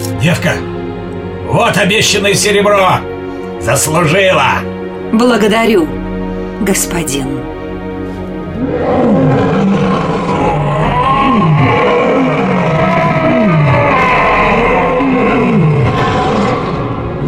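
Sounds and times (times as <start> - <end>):
speech: 0.2 - 0.8, 1.5 - 6.0, 6.6 - 7.5
wounded lion roaring: 8.4 - 17.2.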